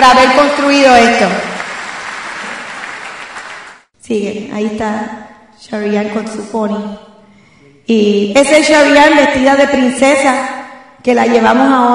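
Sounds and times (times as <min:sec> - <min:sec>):
speech: 0:00.0 - 0:01.5, 0:04.1 - 0:07.1, 0:07.9 - 0:11.9
audience applause: 0:01.3 - 0:03.9.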